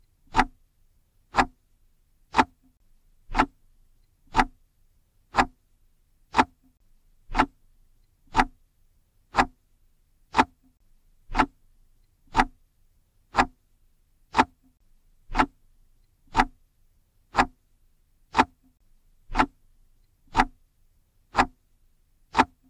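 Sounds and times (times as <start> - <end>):
clock ticking: 0.2 - 0.6, 1.3 - 1.6, 2.3 - 2.7, 3.3 - 4.6, 5.3 - 5.6, 6.3 - 8.6, 9.3 - 9.6, 10.3 - 12.6, 13.3 - 13.6, 14.3 - 14.7, 15.3 - 16.6, 17.3 - 17.6, 18.3 - 19.6, 20.3 - 20.6, 21.3 - 21.7, 22.3 - 22.6.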